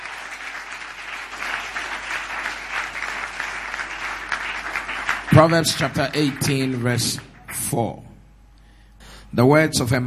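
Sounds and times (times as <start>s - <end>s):
audience clapping: 0.0s - 7.9s
speech: 5.4s - 8.1s, 9.3s - 10.0s.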